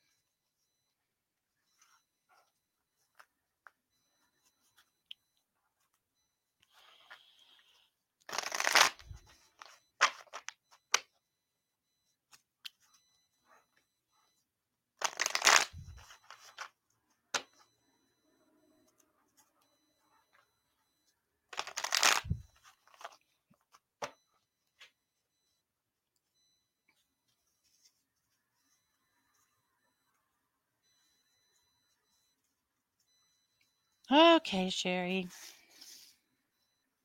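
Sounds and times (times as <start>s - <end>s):
deck of cards shuffled to draw a card: 8.3s - 9.0s, 15.0s - 15.7s, 21.6s - 22.2s
speech: 34.1s - 35.6s.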